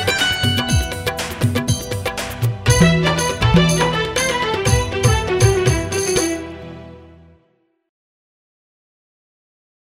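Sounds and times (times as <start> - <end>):
karaoke music: 0.0 - 7.0.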